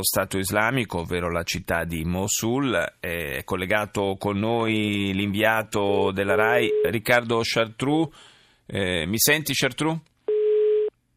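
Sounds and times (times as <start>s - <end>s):
speech: 0.0s - 10.1s
dropped phone line busy tone: 10.3s - 10.9s.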